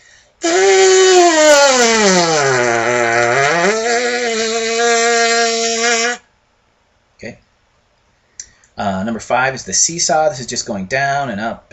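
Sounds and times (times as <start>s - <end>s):
brass lip buzz without mouthpiece, low to high: 0.4s - 6.3s
speech: 9.4s - 11.7s.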